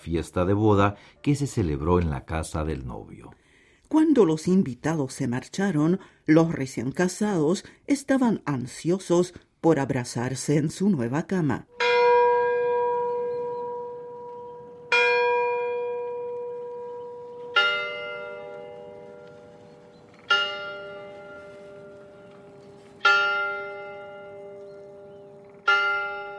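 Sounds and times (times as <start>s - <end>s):
speech: 0.0s - 11.8s
church tower bells striking midnight: 11.7s - 26.3s.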